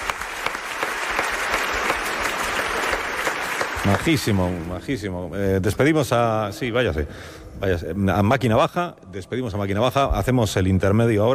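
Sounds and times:
audience applause: 0.0 - 4.9
speech: 3.9 - 11.3.

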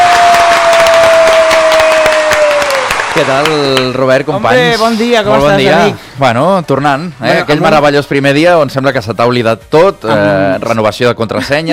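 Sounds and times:
studio audience applause: 0.0 - 4.3
speech: 3.2 - 11.7.

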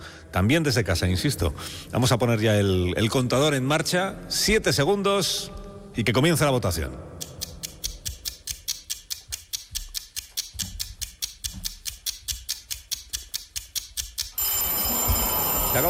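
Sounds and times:
speech: 0.4 - 7.3
vintage bell ringing: 14.4 - 15.8.

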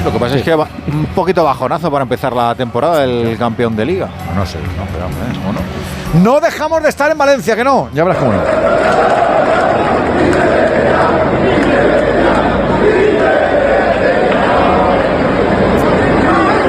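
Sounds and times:
speech: 0.0 - 9.2
crowd shouting in indignation: 8.1 - 16.6.

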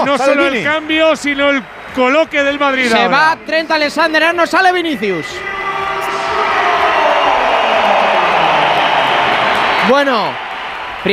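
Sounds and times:
speech: 0.0 - 5.6, 9.9 - 10.4
stadium crowd whistling: 4.1 - 11.1
stadium crowd applause at the Santiago Bernabéu: 5.2 - 11.1.

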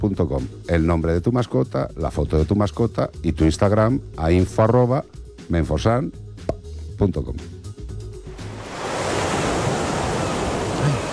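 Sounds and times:
speech: 0.0 - 7.6
ocean waves washing onto a beach: 8.3 - 11.1.

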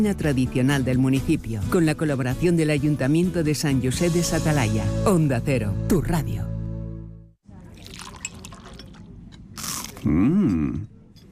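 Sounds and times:
speech: 0.0 - 6.5, 10.0 - 10.9
crunching first bite of breakfast food: 9.5 - 10.6.

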